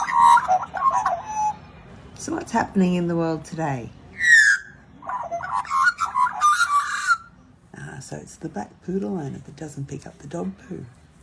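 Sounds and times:
magpie whistling and warbling: 0.0s - 1.6s, 4.1s - 7.3s
speech: 2.3s - 4.0s, 8.2s - 11.0s.

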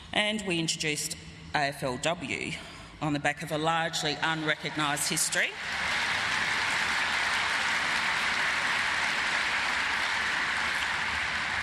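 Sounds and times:
speech: 0.1s - 5.9s
applause: 4.4s - 11.6s.

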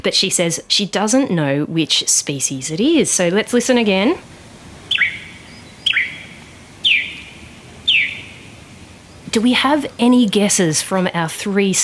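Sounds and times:
speech: 0.0s - 4.4s, 9.4s - 11.8s
yellow-faced honeyeater picking calls: 4.8s - 9.2s.

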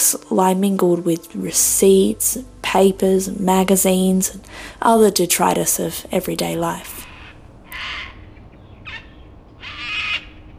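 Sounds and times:
speech: 0.1s - 7.0s
low steady rumble: 0.2s - 10.5s
cockatoos screeching: 7.0s - 10.5s.

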